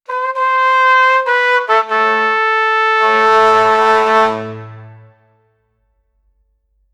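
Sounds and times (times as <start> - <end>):
regal kakaki trumpet in Africa: 0.0 - 5.4.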